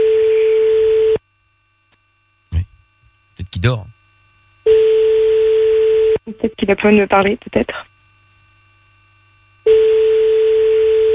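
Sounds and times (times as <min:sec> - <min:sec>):
steady telephone tone as a call reaches an answering machine: 0:00.0 - 0:01.2, 0:04.7 - 0:06.2, 0:09.6 - 0:11.1
speech: 0:03.6 - 0:03.9, 0:06.3 - 0:07.8.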